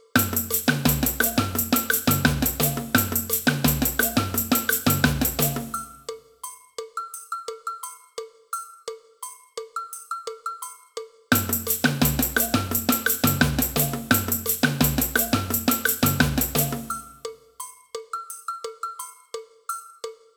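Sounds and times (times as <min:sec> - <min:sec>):
agogo bell in a samba band: 0:00.2 - 0:06.6, 0:11.3 - 0:19.2
cowbell in a samba band: 0:00.2 - 0:20.3.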